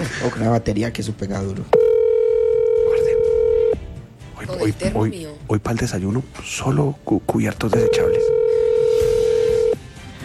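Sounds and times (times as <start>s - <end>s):
speech: 0.2s - 1.8s, 4.5s - 8.3s
telephone call ringing unanswered: 1.8s - 3.8s, 7.7s - 9.8s.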